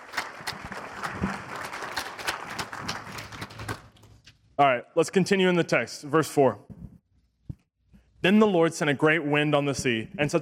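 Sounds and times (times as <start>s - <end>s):
audience clapping: 0.0s - 4.2s
speech: 4.6s - 6.7s, 8.2s - 10.4s.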